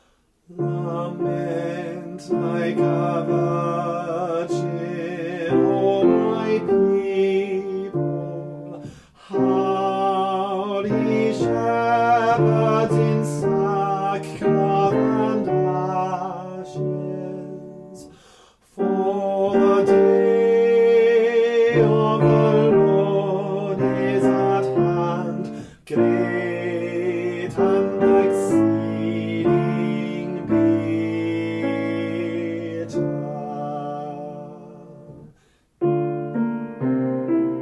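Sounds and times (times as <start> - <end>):
soprano singing: 0.5 - 37.5.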